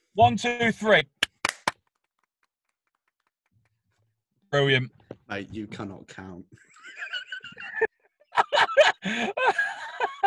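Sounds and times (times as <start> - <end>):
speech: 0.2 - 1.1, 4.5 - 7.0, 9.0 - 9.5
sharp loud hand clap: 1.2 - 3.8
laughter: 6.6 - 10.2.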